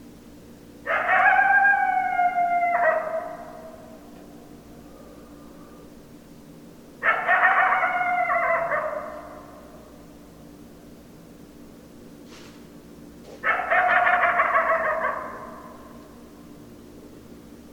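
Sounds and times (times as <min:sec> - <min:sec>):
coyote howling: 0:00.8 - 0:05.9, 0:07.0 - 0:10.1, 0:13.4 - 0:16.3.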